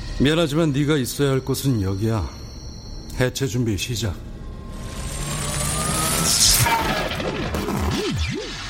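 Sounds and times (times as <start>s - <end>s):
speech: 0.2s - 2.4s, 3.2s - 4.3s
low electronic warble: 4.2s - 8.6s
electric discharge device crackling: 4.7s - 8.6s
electric discharge device zap: 4.8s - 8.6s.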